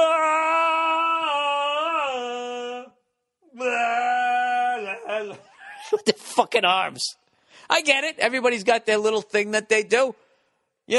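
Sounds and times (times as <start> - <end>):
person imitating a stadium chant with a low wordless melody: 0.0 - 5.5
speech: 5.9 - 10.2.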